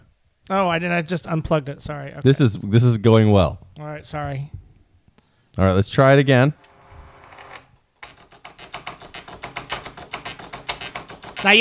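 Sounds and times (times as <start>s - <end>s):
speech: 0.5s - 4.6s, 5.6s - 6.7s
old dot matrix printer feeding paper: 7.2s - 11.5s.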